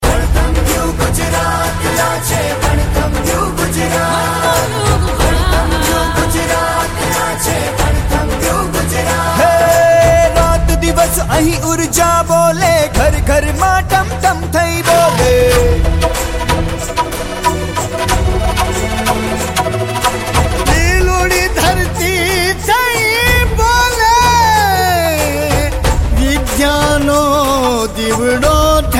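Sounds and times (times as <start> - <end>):
regional anthem: 0.0 - 28.9.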